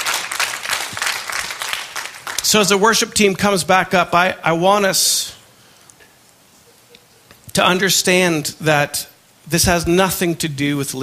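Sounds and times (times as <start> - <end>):
audience clapping: 0.0 - 2.8
speech: 2.5 - 5.4, 7.6 - 11.0.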